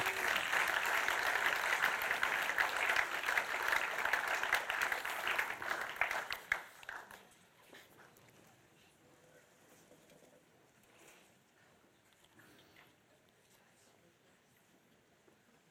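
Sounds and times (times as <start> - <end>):
audience applause: 0.0 - 7.2.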